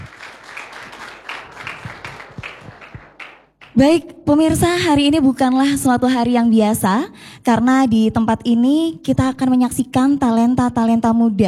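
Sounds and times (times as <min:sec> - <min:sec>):
audience applause: 0:00.0 - 0:03.5
speech: 0:03.8 - 0:11.4.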